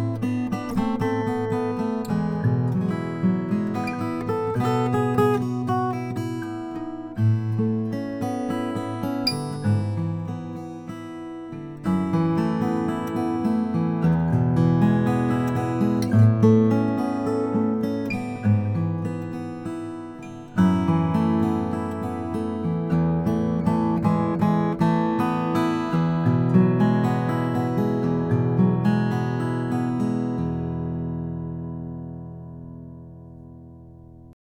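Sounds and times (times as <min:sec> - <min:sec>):
Brazilian rosewood acoustic guitar: 0:00.0 - 0:34.4.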